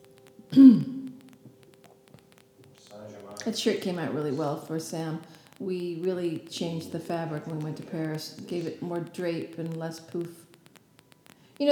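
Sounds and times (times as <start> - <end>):
speech: 0.5 - 0.8, 3.5 - 10.4, 11.6 - 11.7
person coughing from asthma: 0.5 - 1.0.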